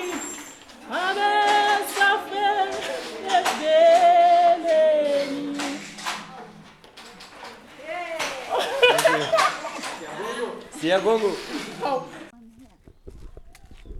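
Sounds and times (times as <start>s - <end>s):
morning song at a handweaving shop: 0.0s - 6.4s
laughter: 8.1s - 12.3s.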